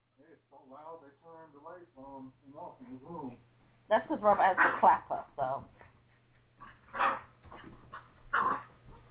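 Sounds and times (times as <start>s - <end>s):
low steady hum: 0.0s - 9.0s
speech: 0.4s - 5.8s
dogs barking loudly and excitedly: 4.3s - 5.2s, 6.6s - 9.0s
dogs yipping and whining: 6.6s - 9.0s.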